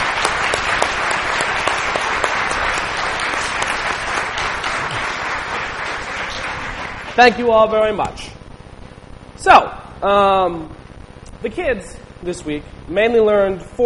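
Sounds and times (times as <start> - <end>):
audience applause: 0.0 - 7.7
speech: 7.2 - 8.3, 9.4 - 10.8, 11.4 - 13.8.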